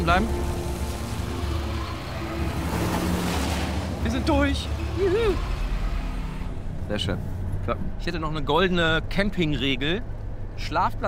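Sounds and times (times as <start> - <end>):
car driving through a mud puddle: 0.0 - 6.4
speech: 0.1 - 0.5, 4.1 - 5.5, 6.9 - 11.0.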